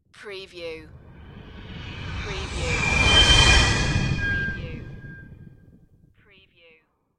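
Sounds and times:
spaceship passing by: 0.9 - 5.4.

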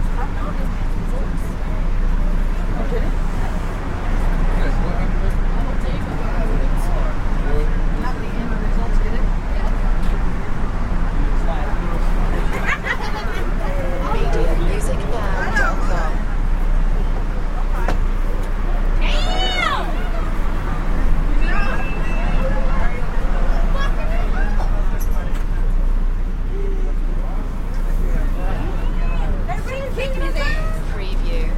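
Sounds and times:
electric train interior: 0.0 - 31.5
medium constant walla in an electric train: 0.0 - 31.5
laughter: 12.1 - 16.2, 22.8 - 24.9.

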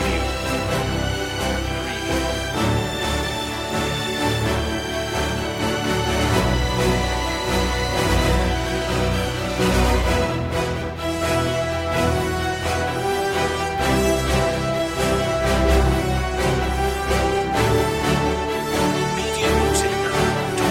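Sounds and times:
brass: 0.0 - 20.6
strings: 0.0 - 20.6.

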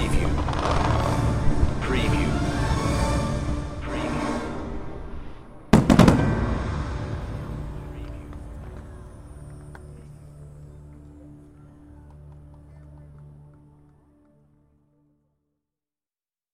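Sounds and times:
fireworks: 0.0 - 2.2, 5.7 - 9.8
orchestra: 0.0 - 15.0.

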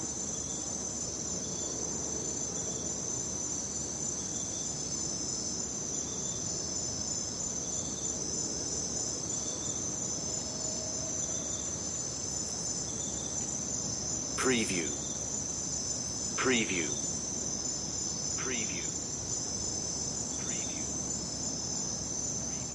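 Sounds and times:
crickets chirping: 0.0 - 22.7
speech: 14.5 - 15.0, 16.4 - 17.0.

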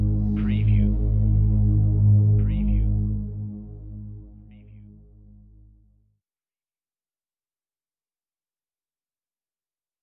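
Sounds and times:
contemporary music mix: 0.0 - 6.0.

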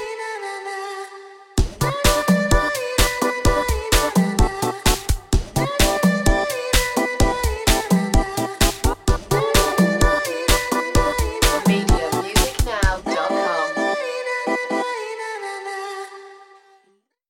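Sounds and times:
happy angel dance music: 1.6 - 15.0.

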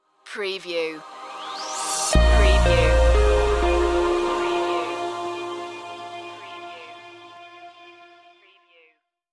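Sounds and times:
short musical stinger: 1.9 - 8.2.

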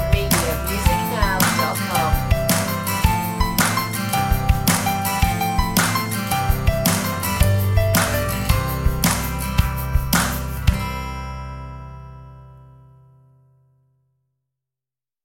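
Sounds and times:
nursery rhyme instrumental: 0.0 - 11.0.

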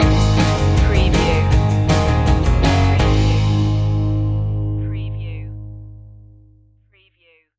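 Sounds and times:
surf music stinger: 0.0 - 4.7.

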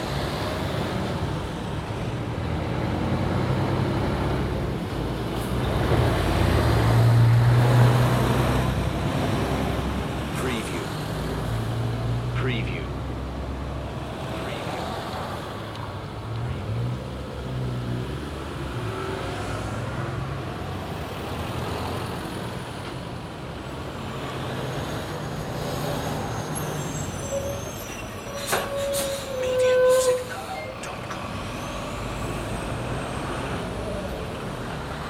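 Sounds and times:
traffic noise: 0.0 - 35.0.

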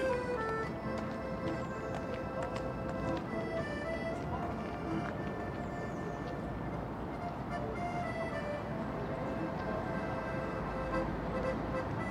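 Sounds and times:
early spring birds: 0.0 - 6.6
accordion in a city square: 0.0 - 12.0.

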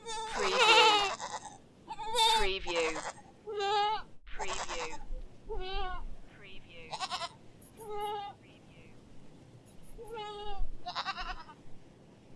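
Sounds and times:
various baby goats: 0.0 - 6.1, 6.9 - 8.4, 9.7 - 11.6.

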